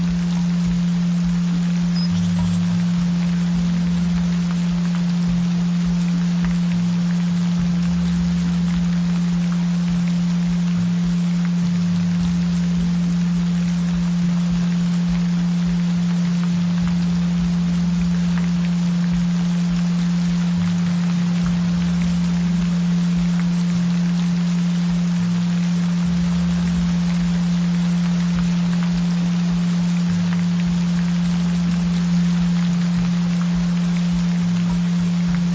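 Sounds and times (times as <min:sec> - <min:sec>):
gentle rain: 0:00.0 - 0:35.5.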